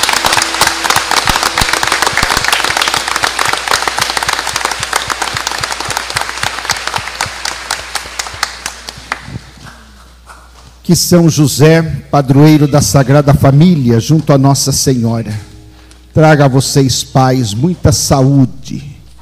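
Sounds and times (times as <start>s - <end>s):
round of applause: 0.0s - 9.6s
speech: 10.9s - 15.5s, 16.2s - 18.9s.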